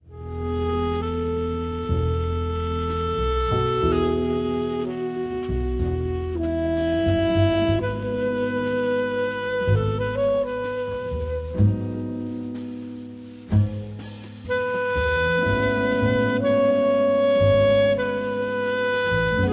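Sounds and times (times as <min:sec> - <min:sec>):
piano concerto: 0:00.0 - 0:19.5.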